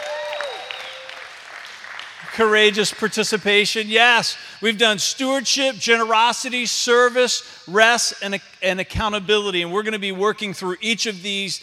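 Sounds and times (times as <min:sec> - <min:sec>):
audience applause: 0:00.0 - 0:03.0
speech: 0:02.4 - 0:11.6.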